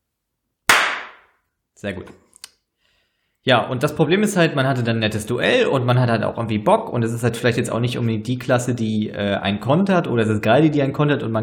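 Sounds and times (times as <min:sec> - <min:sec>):
single hand clap: 0:00.7 - 0:01.2
speech: 0:01.8 - 0:02.2, 0:03.4 - 0:11.4.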